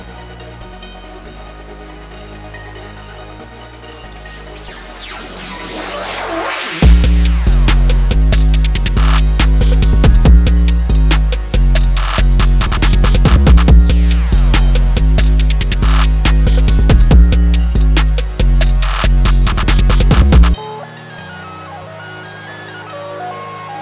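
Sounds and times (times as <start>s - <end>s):
rage hyper trap beat: 5.0s - 22.0s.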